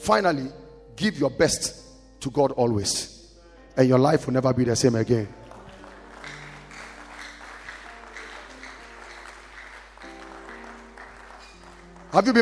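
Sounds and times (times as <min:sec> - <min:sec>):
speech: 0:00.0 - 0:03.1, 0:03.8 - 0:05.4, 0:12.1 - 0:12.4
audience clapping: 0:05.2 - 0:12.4.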